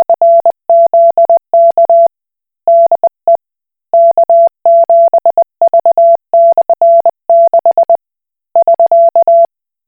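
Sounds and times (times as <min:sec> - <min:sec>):
Koch Morse code beeps: 0:00.0 - 0:02.1, 0:04.0 - 0:08.0, 0:08.6 - 0:09.5.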